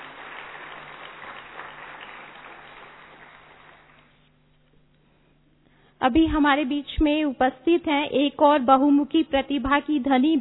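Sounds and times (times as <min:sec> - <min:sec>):
faint audience applause welcoming a speaker: 0:00.0 - 0:04.3
speech: 0:06.0 - 0:10.3.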